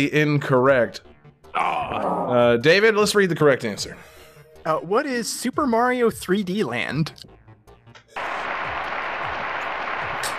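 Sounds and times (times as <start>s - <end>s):
speech: 0.0s - 7.4s
understated golf clap applause: 8.2s - 10.3s.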